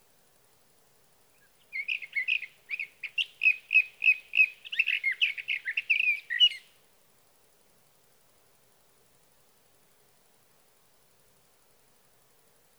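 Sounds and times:
sage thrasher song: 1.4s - 6.8s.

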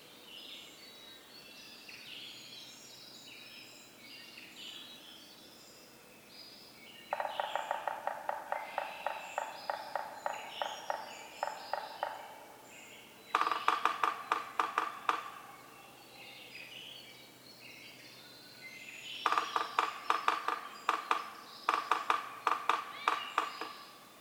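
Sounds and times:
songbirds singing: 0.0s - 24.1s
Yellow-bellied Sapsucker drumming: 7.1s - 12.7s, 13.3s - 15.9s, 19.2s - 24.1s.

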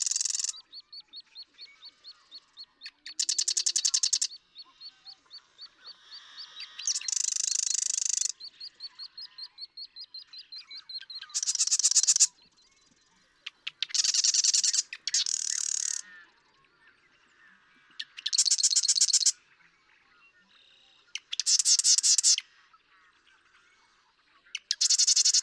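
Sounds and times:
marsh wren song: 0.0s - 0.6s, 3.1s - 4.3s, 6.8s - 8.4s, 11.2s - 12.3s, 13.6s - 16.0s, 18.2s - 19.3s, 21.2s - 22.4s, 24.6s - 25.4s.

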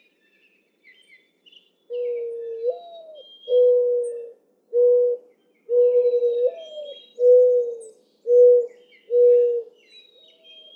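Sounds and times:
mourning dove cooing: 2.0s - 9.8s.

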